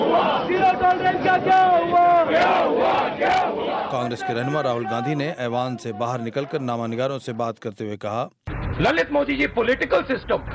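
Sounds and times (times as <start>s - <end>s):
opposition members chanting slogans in parliament: 0.0s - 6.7s
speech: 0.8s - 10.5s.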